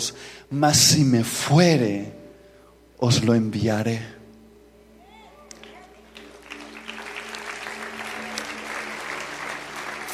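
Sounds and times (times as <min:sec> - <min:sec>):
speech: 0:00.0 - 0:02.2, 0:03.0 - 0:04.2
audience applauding: 0:05.6 - 0:10.1.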